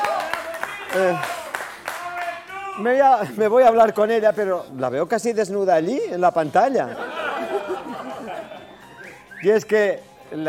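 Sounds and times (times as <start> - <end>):
audience applause: 0.0 - 2.4
speech: 0.9 - 1.4, 2.8 - 7.1, 9.4 - 10.4
laughter: 6.7 - 9.2.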